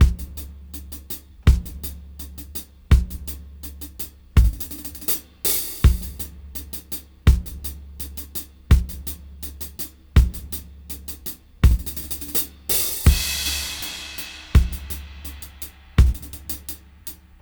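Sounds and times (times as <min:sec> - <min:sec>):
kick drum: 0:00.0 - 0:00.4, 0:01.4 - 0:01.9, 0:02.9 - 0:03.3, 0:04.4 - 0:04.8, 0:05.8 - 0:06.2, 0:07.3 - 0:07.6, 0:08.7 - 0:09.1, 0:10.2 - 0:10.6, 0:11.6 - 0:12.1, 0:13.1 - 0:13.6, 0:14.5 - 0:15.4, 0:16.0 - 0:16.7
hi-hat: 0:00.0 - 0:17.4.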